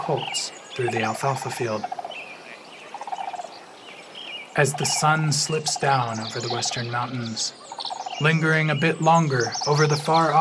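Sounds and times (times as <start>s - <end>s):
sandhill cranes bugling in the wetland: 0.0s - 10.4s
speech: 0.1s - 2.0s, 4.6s - 10.4s.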